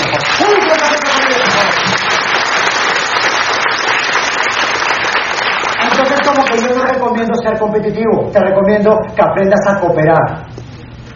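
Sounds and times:
audience applause: 0.0s - 6.8s
speech: 7.7s - 10.4s.

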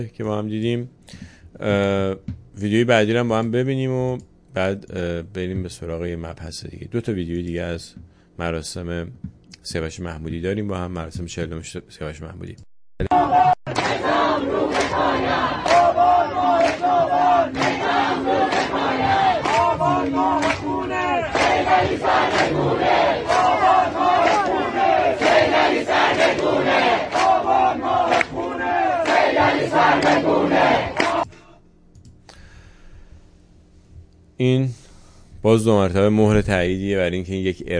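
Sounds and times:
speech: 0.0s - 13.5s, 34.4s - 34.8s, 35.4s - 37.7s
crowd chanting protest slogans at memorial: 13.0s - 31.3s.

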